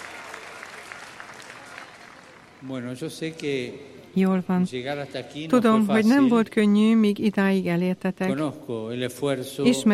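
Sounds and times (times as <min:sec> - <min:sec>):
audience applause: 0:00.0 - 0:02.5
speech: 0:02.6 - 0:09.9.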